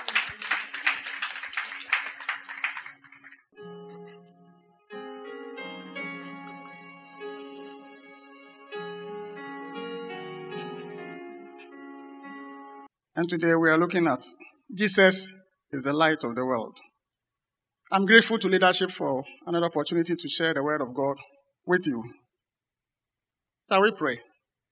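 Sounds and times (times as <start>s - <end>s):
audience clapping: 0.0s - 3.6s
speech: 13.2s - 16.9s, 17.9s - 22.2s, 23.7s - 24.3s.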